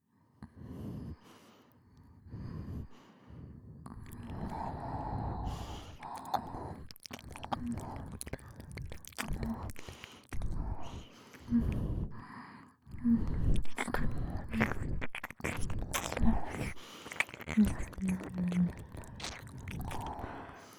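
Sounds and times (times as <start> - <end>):
double nose breathing: 2.3 - 20.7
ear licking: 4.0 - 12.2, 12.9 - 20.7.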